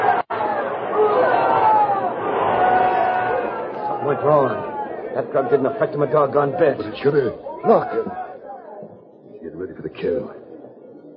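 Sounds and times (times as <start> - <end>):
enthusiastic bullfight crowd screaming: 0.0 - 8.6
speech: 5.2 - 8.3, 9.4 - 10.4.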